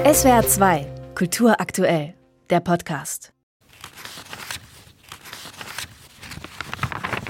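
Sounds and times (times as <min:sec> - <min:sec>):
speech: 0:00.1 - 0:03.3
pages of old leather-bound cookbook being turned: 0:03.6 - 0:07.2.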